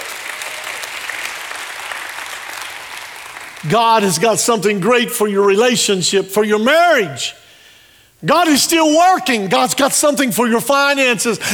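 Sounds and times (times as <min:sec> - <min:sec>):
church audience applause: 0:00.0 - 0:03.7
speech: 0:03.6 - 0:07.4, 0:08.2 - 0:11.5.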